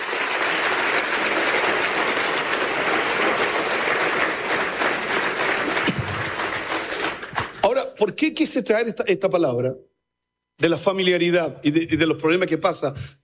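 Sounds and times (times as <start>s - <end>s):
audience applause: 0.0s - 7.7s
speech: 8.0s - 9.9s, 10.6s - 13.2s.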